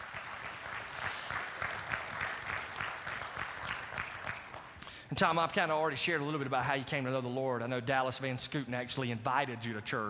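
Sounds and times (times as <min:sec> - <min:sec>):
audience applause welcoming a guest speaker to the stage: 0:00.0 - 0:04.8
speech: 0:05.1 - 0:10.0.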